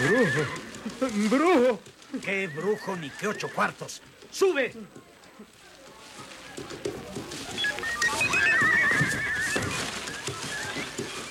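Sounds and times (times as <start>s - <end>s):
horse neighing: 0.0s - 3.9s, 8.0s - 10.9s
scattered knocks and shuffles: 0.0s - 11.3s
speech: 0.1s - 5.0s.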